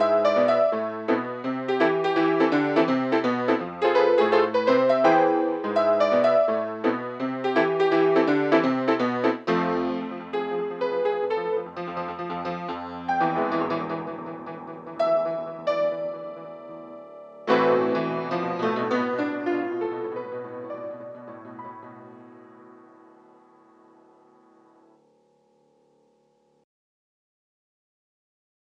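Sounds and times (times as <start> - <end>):
happy street blues music: 0.0 - 22.4.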